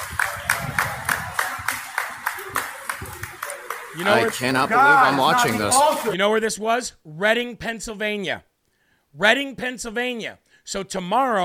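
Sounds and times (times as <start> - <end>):
people clapping: 0.0 - 6.2
speech: 4.0 - 8.5, 9.2 - 11.4.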